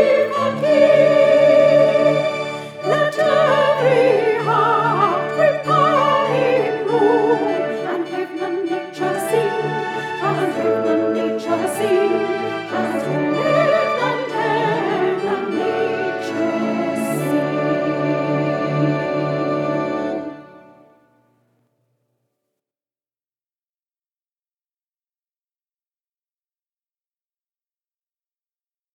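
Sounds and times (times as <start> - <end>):
soprano singing a Christmas carol: 0.0 - 20.5.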